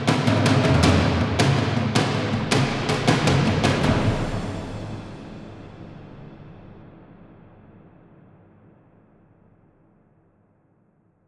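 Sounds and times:
battle warrior drums: 0:00.0 - 0:06.8.

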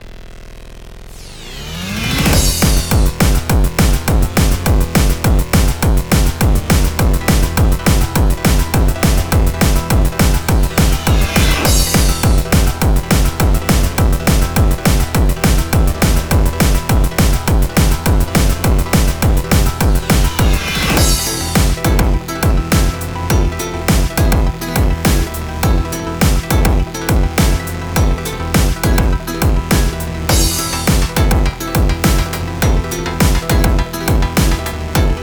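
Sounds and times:
instrumental music: 0:01.4 - 0:35.2.

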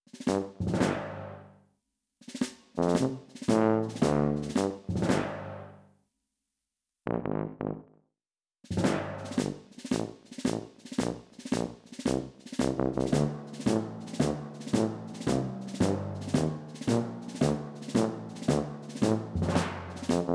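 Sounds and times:
rhythmic background music: 0:00.1 - 0:01.4, 0:02.3 - 0:05.7, 0:08.7 - 0:20.3.

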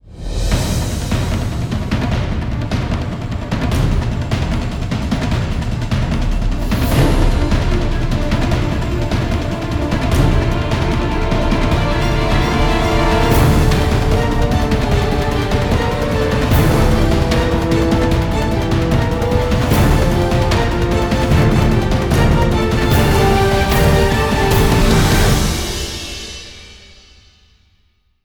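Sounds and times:
orchestral music: 0:00.0 - 0:27.3.

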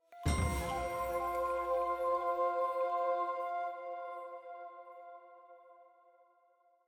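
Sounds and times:
item jingle: 0:00.0 - 0:04.4
flute in F: 0:00.0 - 0:05.9
choir singing: 0:00.3 - 0:05.0.

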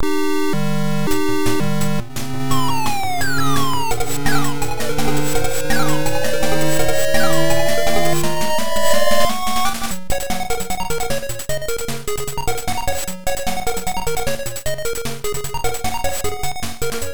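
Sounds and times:
background music: 0:00.0 - 0:17.0.

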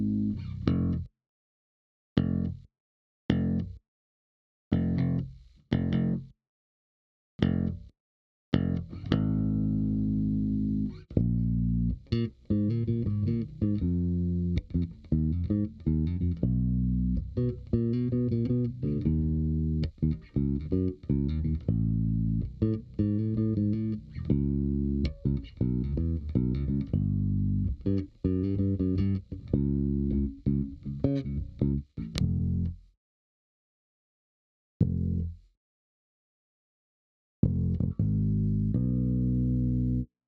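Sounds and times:
bass: 0:00.0 - 0:01.1, 0:02.2 - 0:02.7, 0:03.3 - 0:03.8, 0:04.7 - 0:06.4, 0:07.4 - 0:07.9, 0:08.5 - 0:33.0, 0:34.8 - 0:35.5, 0:37.4 - 0:40.1.

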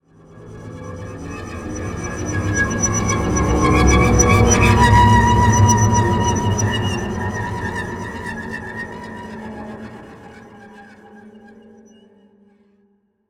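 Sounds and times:
river tension music: 0:01.0 - 0:10.6.

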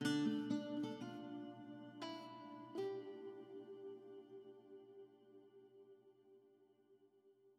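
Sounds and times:
harp: 0:00.0 - 0:05.7.

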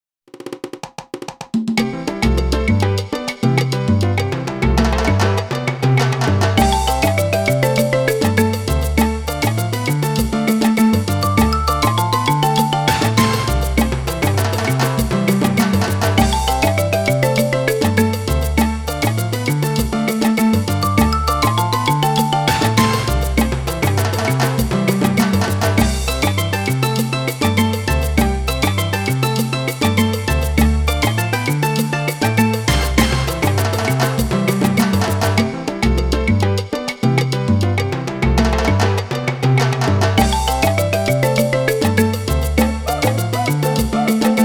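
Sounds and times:
salsa music: 0:01.7 - 0:44.4.

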